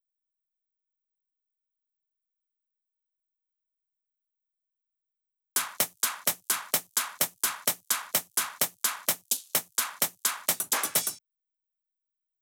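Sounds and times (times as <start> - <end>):
drum loop with hi-hat: 5.6 - 11.2.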